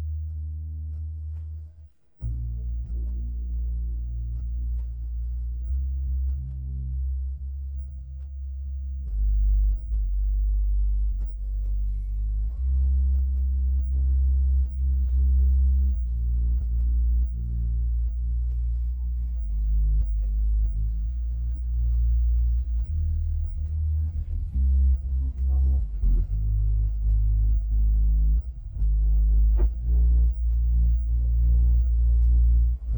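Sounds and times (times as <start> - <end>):
bass stem: 0.0 - 32.9.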